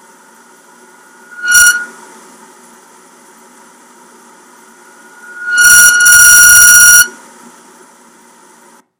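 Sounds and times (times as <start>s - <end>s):
window air conditioner whistling squeal: 0.9s - 2.1s, 4.8s - 7.3s.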